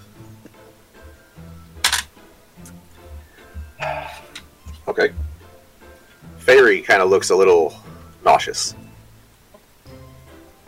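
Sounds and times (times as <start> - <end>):
dice rolling: 1.8 - 2.1
speech: 5.0 - 5.3, 6.5 - 8.8.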